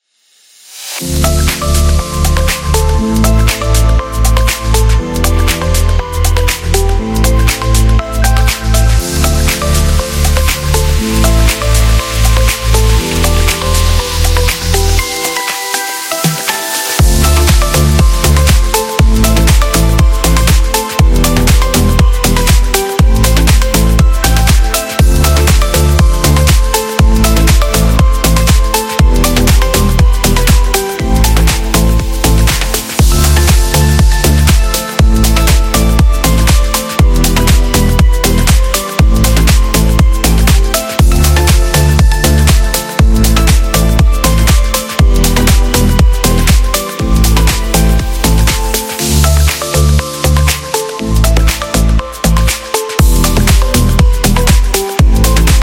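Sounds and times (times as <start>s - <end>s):
tropical music: 0.7s - 55.6s.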